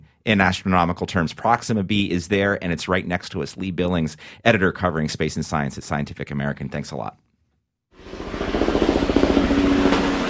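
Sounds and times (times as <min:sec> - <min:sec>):
speech: 0:00.2 - 0:07.3
helicopters hovering over neighborhoods in the Florida Keys: 0:08.0 - 0:10.2.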